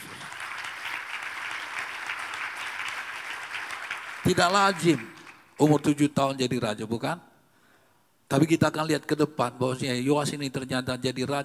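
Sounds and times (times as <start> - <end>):
applause, clapping hands: 0.0 - 6.0
speech: 4.3 - 7.3, 8.3 - 11.4.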